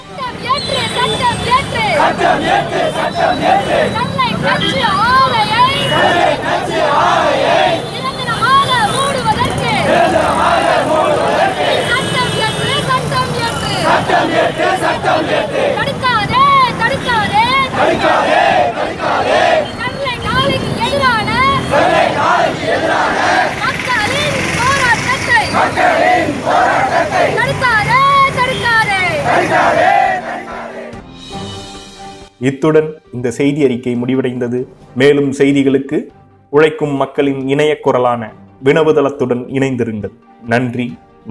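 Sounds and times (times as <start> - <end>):
protest demonstration crowd chanting: 0.6 - 31.0
speech: 2.0 - 7.7, 32.4 - 41.3.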